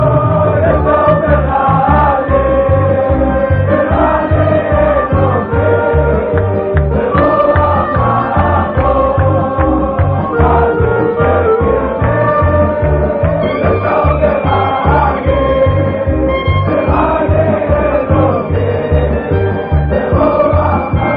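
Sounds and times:
old Arabic ringtone: 0:00.4 - 0:21.1.

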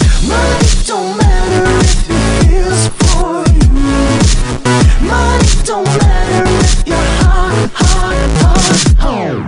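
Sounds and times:
turntable: 0:00.0 - 0:09.4.

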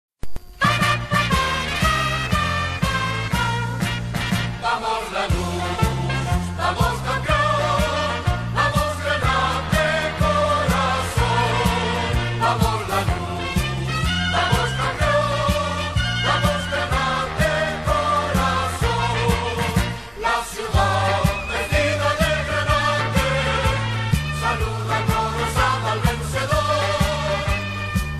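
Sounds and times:
march music: 0:00.6 - 0:28.1.

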